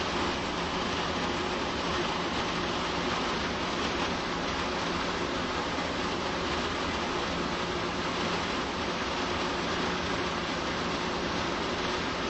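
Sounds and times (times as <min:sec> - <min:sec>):
gas pump: 0:00.0 - 0:12.2.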